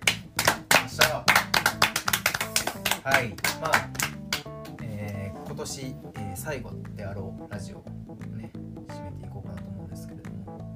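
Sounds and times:
audience clapping: 0.0 - 4.8
speech: 3.1 - 4.1, 5.6 - 8.6.

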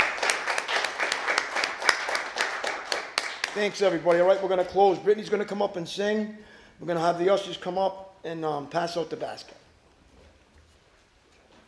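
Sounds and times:
audience applause: 0.0 - 4.1
speech: 3.6 - 9.6.

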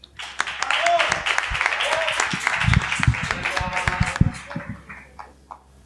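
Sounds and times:
audience applause: 0.0 - 5.2.

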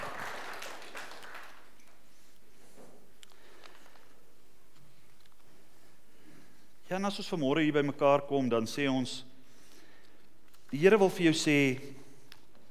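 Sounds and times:
audience applause: 0.0 - 2.2
quiet room noise: 0.0 - 12.6
speech: 7.0 - 9.3, 10.7 - 12.0.

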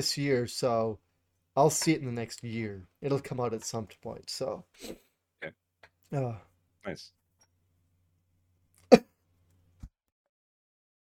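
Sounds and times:
speech: 0.0 - 7.2
sharp cough: 8.9 - 9.1.

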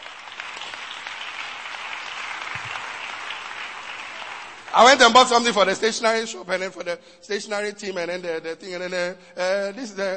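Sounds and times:
audience clapping: 0.0 - 6.0
speech: 4.7 - 10.1.

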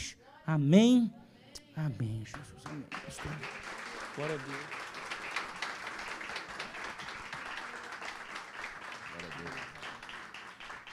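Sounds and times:
speech: 0.5 - 1.2, 1.8 - 4.8
audience applauding: 2.3 - 10.9.

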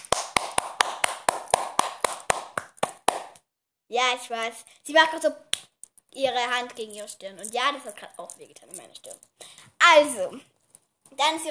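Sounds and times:
sharp bright hand claps: 0.0 - 3.4
speech: 3.9 - 5.5, 6.1 - 10.5, 11.1 - 11.4.

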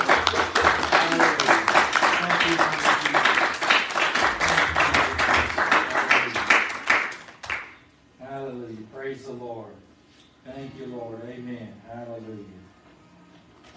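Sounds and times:
audience hand clapping: 0.0 - 7.8.

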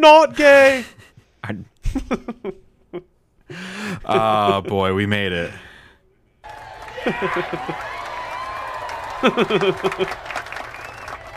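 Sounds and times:
speech: 0.0 - 2.6, 3.6 - 5.7, 7.0 - 7.9, 9.2 - 10.4
laughter: 3.8 - 5.0, 6.5 - 10.9
crowd applause: 6.4 - 11.3
voices whooping and shouting: 6.4 - 11.3.

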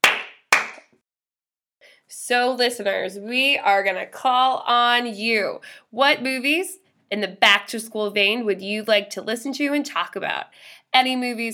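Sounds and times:
hand claps: 0.0 - 0.9
speech: 2.1 - 11.5.

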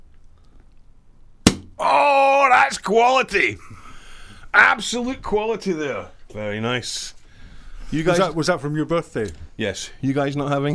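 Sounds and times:
champagne bottle being opened, cork popping: 1.4 - 1.8
speech: 1.8 - 3.8, 4.5 - 7.2, 7.9 - 10.7.

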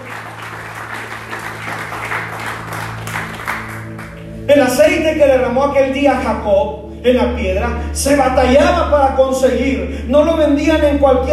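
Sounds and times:
audience applause: 0.0 - 4.4
speech: 4.5 - 11.3.

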